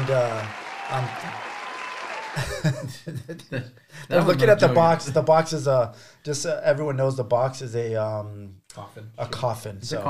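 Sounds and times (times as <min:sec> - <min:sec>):
crowd cheering and applauding at a gathering: 0:00.0 - 0:02.8
speech: 0:00.1 - 0:01.5, 0:02.4 - 0:10.0
laughter: 0:02.2 - 0:03.7.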